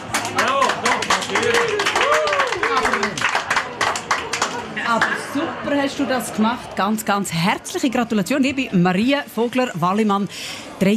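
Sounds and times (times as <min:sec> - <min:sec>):
applause sound effect: 0:00.0 - 0:05.2
speech: 0:05.8 - 0:10.9.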